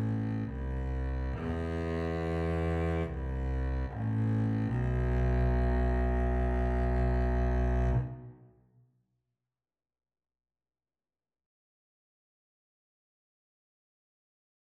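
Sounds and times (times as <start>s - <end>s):
double bass duet: 0.0s - 8.3s.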